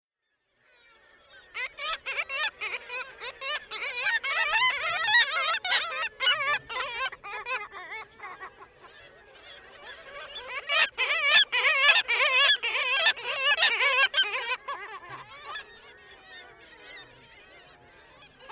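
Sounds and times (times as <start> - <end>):
black-legged kittiwake calling: 1.6 - 8.6, 9.4 - 15.7.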